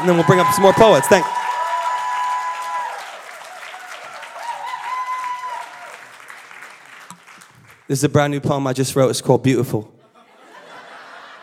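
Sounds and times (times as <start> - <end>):
speech: 0.0 - 1.4, 7.9 - 10.0
audience clapping: 0.0 - 8.0
laughter: 10.0 - 11.4.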